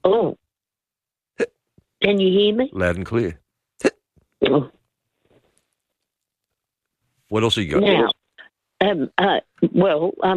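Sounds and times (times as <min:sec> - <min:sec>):
hiccups: 0:01.4 - 0:01.6, 0:03.8 - 0:04.8
speech: 0:02.0 - 0:03.4, 0:07.3 - 0:08.2, 0:08.8 - 0:10.3.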